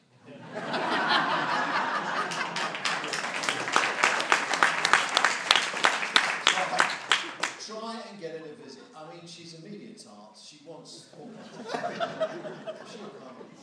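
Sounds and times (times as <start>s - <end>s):
laughter: 0.3s - 7.6s, 11.0s - 13.6s
applause: 1.6s - 7.7s.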